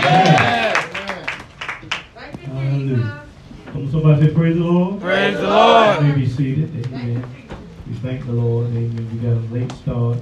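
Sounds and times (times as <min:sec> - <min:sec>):
church audience applauding to welcome a preacher: 0:00.0 - 0:02.1
speech: 0:04.2 - 0:07.0, 0:08.0 - 0:10.2.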